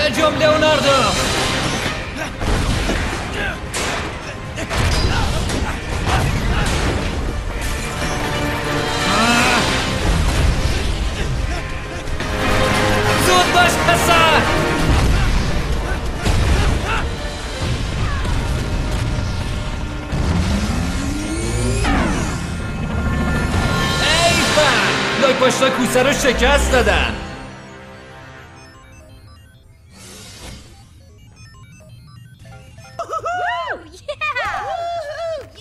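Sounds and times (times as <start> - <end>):
speech: 0.1 - 1.3, 25.9 - 27.1
explosions in an animated cartoon: 0.8 - 34.3
laughter: 32.9 - 35.5.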